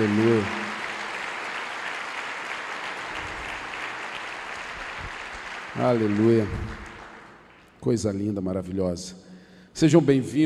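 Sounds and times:
speech: 0:00.0 - 0:00.6, 0:05.8 - 0:06.8, 0:07.8 - 0:09.2, 0:09.8 - 0:10.4
audience applause: 0:00.0 - 0:07.7.

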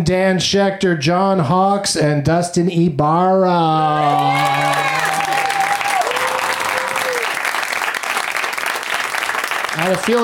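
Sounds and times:
speech: 0:00.0 - 0:05.0, 0:09.8 - 0:10.2
audience applause: 0:04.0 - 0:10.2.

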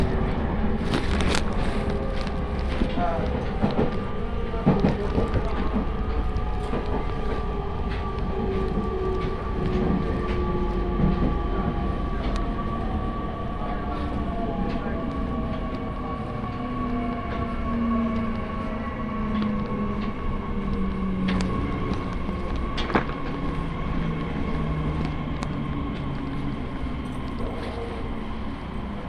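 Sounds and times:
Joban Line train rumble: 0:00.0 - 0:29.0.

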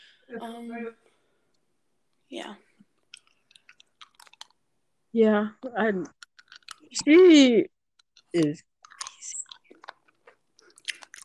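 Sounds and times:
speech: 0:00.3 - 0:01.1, 0:02.3 - 0:02.7, 0:05.2 - 0:06.2, 0:06.9 - 0:08.7
person eating with crisp bites and chewing: 0:03.0 - 0:04.6, 0:06.2 - 0:07.2, 0:08.0 - 0:11.2.

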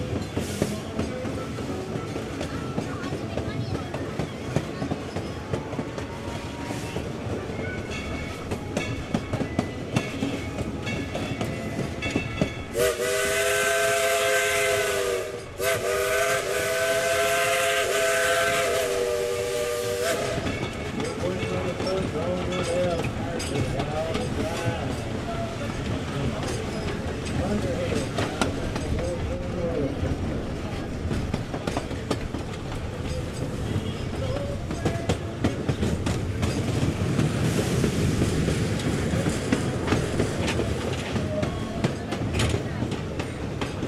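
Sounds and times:
1930s steam locomotive chugging: 0:00.0 - 0:43.8
rhythmic clatter of steam locomotive wheels: 0:00.0 - 0:43.8
steam locomotive whistle: 0:12.7 - 0:20.5.

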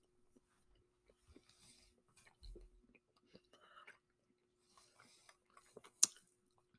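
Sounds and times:
person chewing a chocolate chip snack: 0:01.3 - 0:06.7.

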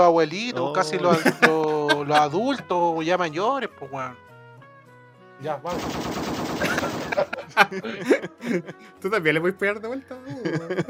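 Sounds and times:
speech: 0:00.0 - 0:04.3, 0:05.4 - 0:06.3, 0:07.2 - 0:10.8
laughter: 0:00.7 - 0:03.0, 0:06.4 - 0:09.1, 0:10.2 - 0:10.8
rifle gunfire in a video game: 0:05.7 - 0:07.5.

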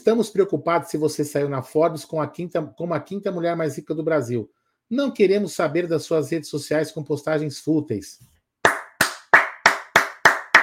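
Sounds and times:
speech: 0:00.0 - 0:08.3
crisp hand claps: 0:08.6 - 0:10.6.

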